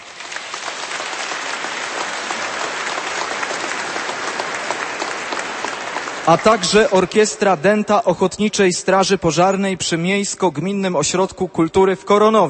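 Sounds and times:
audience applause: 0.0 - 7.8
speech: 6.3 - 12.4.

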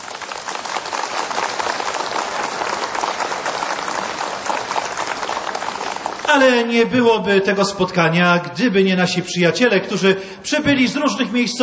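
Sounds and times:
audience applause: 0.0 - 6.7
speech: 6.3 - 11.6.

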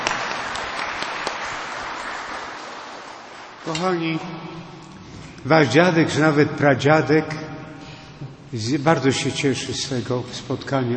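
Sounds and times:
audience applause: 0.0 - 3.8
speech: 3.6 - 4.8, 5.4 - 7.4, 8.5 - 10.9.

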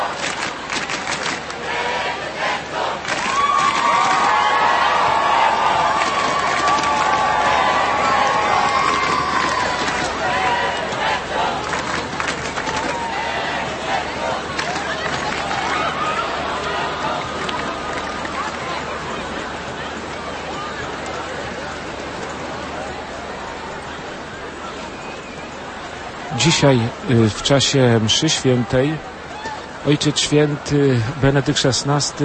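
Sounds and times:
young crowd cheering and shouting greetings to Pope Benedict XVI: 0.0 - 32.2
speech: 26.4 - 29.1, 29.8 - 32.2.

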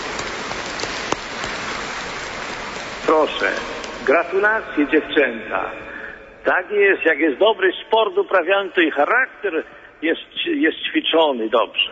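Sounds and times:
audience applause for the young organisers of a sports event: 0.0 - 4.1
speech: 3.2 - 11.9.

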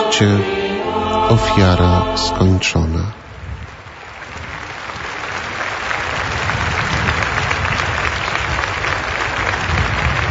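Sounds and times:
speech: 0.1 - 0.6, 1.3 - 3.2
warm joyful applause from a large crowd: 3.6 - 10.2.

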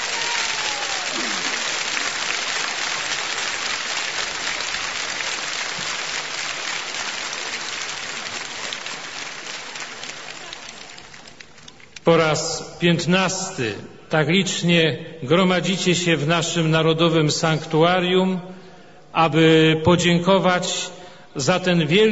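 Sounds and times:
large crowd applause: 0.0 - 12.0
speech: 12.1 - 18.6, 19.2 - 22.1.

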